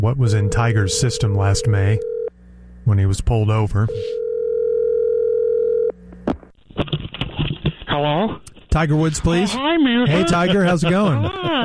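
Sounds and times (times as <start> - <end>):
speech: 0.0 - 2.1, 2.8 - 4.2, 8.0 - 11.6
telephone dial tone: 0.4 - 2.3, 3.9 - 5.9
laughter: 9.6 - 11.6.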